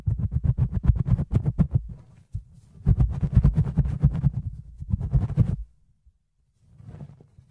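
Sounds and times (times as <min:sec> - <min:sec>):
fluffy ear cleaning brushing and rubbing: 0:00.0 - 0:05.7.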